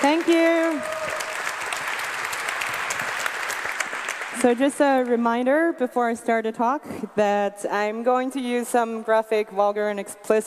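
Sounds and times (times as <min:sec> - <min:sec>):
speech: 0:00.0 - 0:01.0, 0:04.4 - 0:10.4
audience applause: 0:00.0 - 0:04.8.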